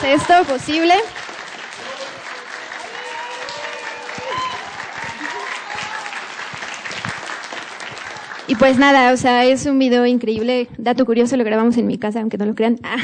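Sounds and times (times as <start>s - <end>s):
speech: 0.0s - 1.2s, 8.5s - 13.0s
applause: 0.0s - 9.4s.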